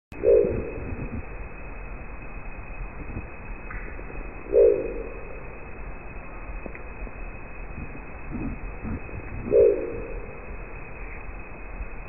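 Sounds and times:
crested owl giving a deep guttural growl: 0:00.2 - 0:01.5, 0:03.0 - 0:05.7, 0:07.6 - 0:11.2.

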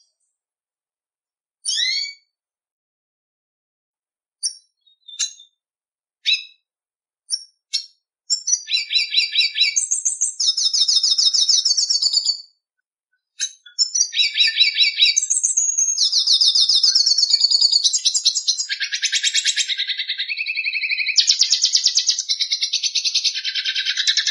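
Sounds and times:
red siskin singing with twittering phrases, chirps, trills and buzzy notes: 0:01.6 - 0:02.2, 0:04.4 - 0:05.6, 0:06.2 - 0:06.6, 0:07.3 - 0:12.5, 0:13.4 - 0:24.2.

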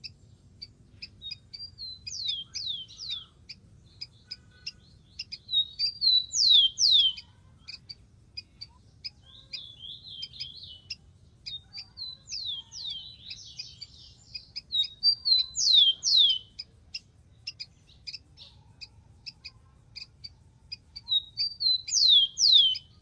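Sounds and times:
Rufous-collared sparrow whistled song: 0:00.0 - 0:23.0.

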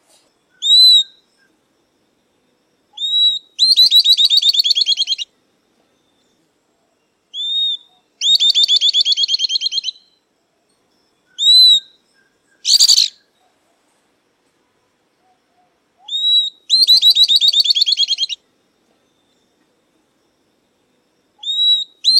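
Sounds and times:
southern beardless-tyrannulet song: 0:00.5 - 0:01.5, 0:03.0 - 0:05.3, 0:07.3 - 0:10.2, 0:11.3 - 0:13.5, 0:16.0 - 0:18.4, 0:21.4 - 0:22.1.

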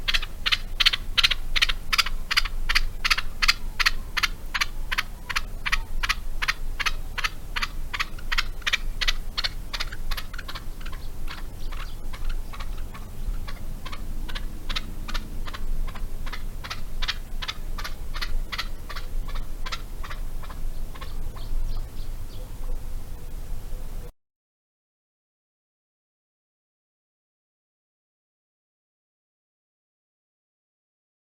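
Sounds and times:
Barbary partridge calling: 0:00.0 - 0:23.9.

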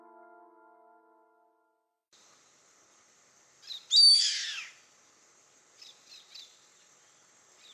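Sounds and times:
yellow-headed caracara Milvago chimachima raspy scream: 0:03.9 - 0:04.7.

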